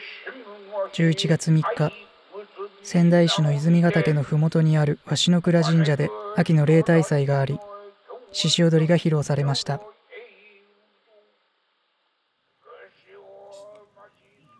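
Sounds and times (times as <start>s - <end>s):
Shishi odori deer dance music: 1.0s - 1.9s, 2.9s - 7.6s, 8.4s - 9.8s
person narrating: 1.0s - 2.0s, 2.9s - 7.6s, 8.4s - 9.8s.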